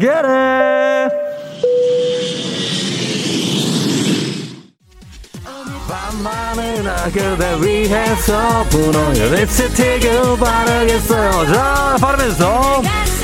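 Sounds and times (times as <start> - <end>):
speech: 0.0 - 0.7, 6.6 - 13.1
airplane takeoff jet engine roar: 1.1 - 4.8.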